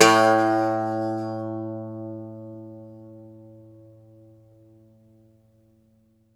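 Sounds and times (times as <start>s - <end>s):
Irish bouzouki plucked strings: 0.0s - 3.8s.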